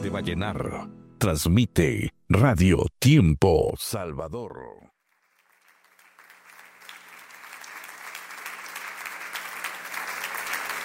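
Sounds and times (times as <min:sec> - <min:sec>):
speech: 0:00.0 - 0:04.9
hands clapping: 0:05.0 - 0:10.8.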